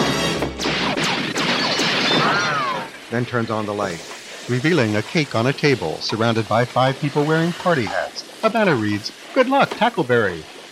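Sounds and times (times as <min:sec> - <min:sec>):
pistol shots fired into a room: 0:00.6 - 0:02.4
speech: 0:03.1 - 0:10.6.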